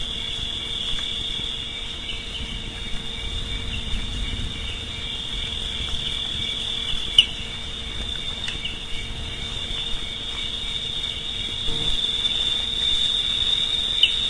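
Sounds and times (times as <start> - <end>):
cricket chirping: 0.0 - 14.2.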